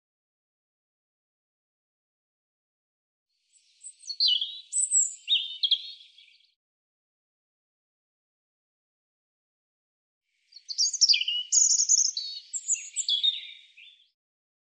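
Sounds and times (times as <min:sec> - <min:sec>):
European robin song: 0:03.4 - 0:06.6, 0:10.3 - 0:14.2.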